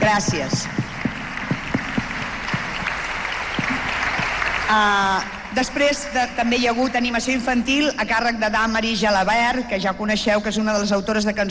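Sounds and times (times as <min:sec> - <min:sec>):
speech: 0:00.1 - 0:00.8, 0:04.7 - 0:11.4
audience applause: 0:00.7 - 0:05.8.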